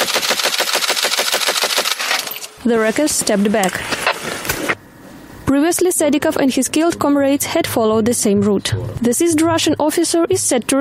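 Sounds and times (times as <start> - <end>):
automatic gunfire from Ukrainian National Guard fighters: 0.0 - 2.3
speech: 2.6 - 3.9, 5.5 - 10.7.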